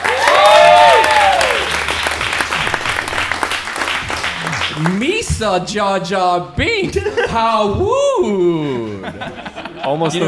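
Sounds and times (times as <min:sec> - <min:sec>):
audience applause welcoming a newspaper editor and columnist: 0:00.0 - 0:05.2
speech: 0:04.8 - 0:10.2
laughter: 0:06.8 - 0:10.2.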